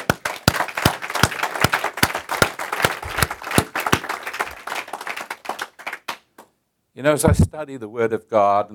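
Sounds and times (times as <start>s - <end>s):
audience clapping hands: 0.0s - 6.5s
speech: 7.0s - 8.7s.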